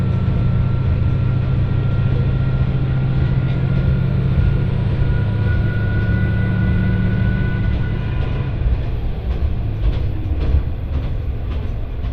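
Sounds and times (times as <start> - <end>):
thin whine: 0.0 - 8.8
Etsumi-Hoku Line train rumble: 0.0 - 12.1
rail clacks and rattles: 0.0 - 12.1.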